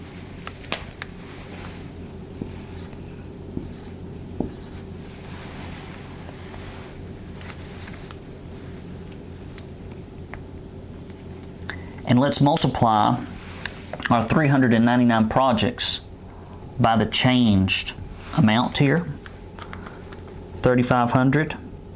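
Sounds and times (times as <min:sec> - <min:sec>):
pen scratching across paper writing a calculation: 0:03.6 - 0:04.9
speech: 0:12.1 - 0:13.3, 0:14.1 - 0:16.1, 0:16.8 - 0:19.2, 0:20.6 - 0:21.6.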